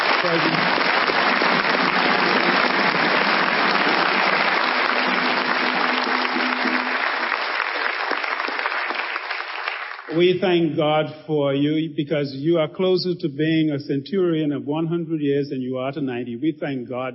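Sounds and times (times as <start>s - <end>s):
audience applause: 0.0s - 10.4s
speech: 0.2s - 0.9s, 10.2s - 17.1s.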